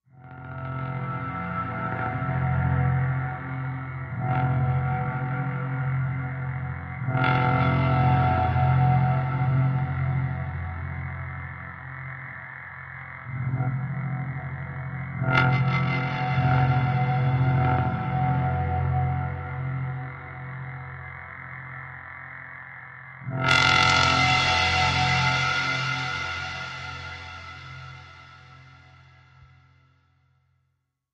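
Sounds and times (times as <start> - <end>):
eerie ambience: 0.2 - 29.6.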